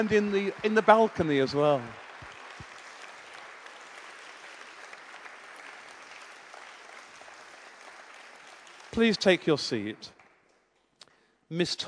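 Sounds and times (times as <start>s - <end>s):
speech: 0.0s - 2.0s, 8.9s - 10.2s, 11.5s - 11.8s
audience clapping for teachers: 0.0s - 11.0s.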